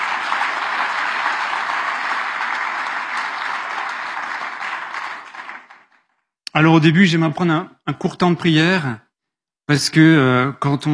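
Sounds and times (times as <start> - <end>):
audience applause: 0.0 - 6.2
speech: 6.6 - 9.0, 9.7 - 10.9.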